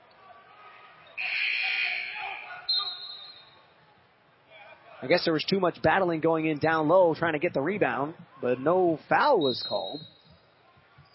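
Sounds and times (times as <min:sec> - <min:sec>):
crowd noise: 0:00.0 - 0:11.1
referee's whistle at basketball game: 0:01.1 - 0:03.6, 0:09.3 - 0:11.1
speech: 0:05.0 - 0:10.2.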